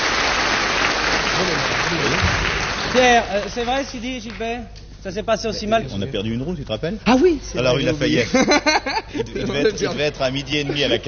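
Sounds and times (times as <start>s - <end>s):
studio audience applause: 0.0s - 4.1s
speech: 2.9s - 11.0s
laughter: 8.2s - 11.0s.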